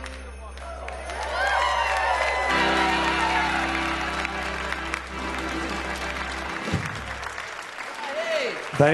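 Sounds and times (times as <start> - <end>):
audience applause after song: 0.3 - 8.9
audience cheers and whoops: 0.6 - 4.7.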